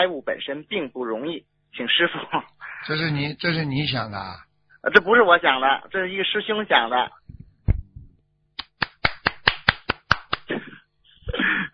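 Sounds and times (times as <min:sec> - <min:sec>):
speech: 0:00.0 - 0:07.2
hand clapping: 0:08.6 - 0:10.6.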